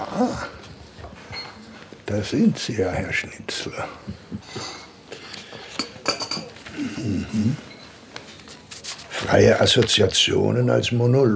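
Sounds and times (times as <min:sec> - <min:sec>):
speech: 0:00.0 - 0:00.6, 0:02.1 - 0:04.8, 0:07.0 - 0:07.7, 0:09.3 - 0:11.3
café clatter of silverware clinking against plates: 0:01.2 - 0:01.6, 0:05.4 - 0:06.6.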